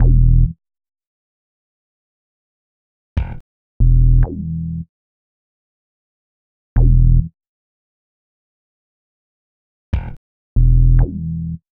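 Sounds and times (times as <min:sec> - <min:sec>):
synth bass: 0:00.0 - 0:00.6, 0:03.8 - 0:04.8, 0:06.8 - 0:07.3, 0:10.6 - 0:11.6.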